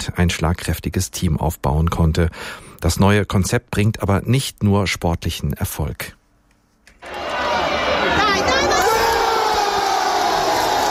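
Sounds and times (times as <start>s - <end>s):
speech: 0.0s - 6.2s
football fans cheering a goal: 7.0s - 10.8s.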